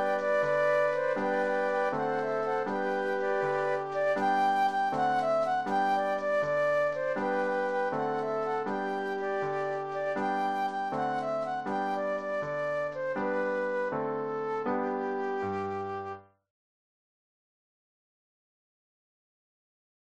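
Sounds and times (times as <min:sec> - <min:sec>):
flute trio: 0:00.0 - 0:16.2
piano: 0:00.0 - 0:16.4.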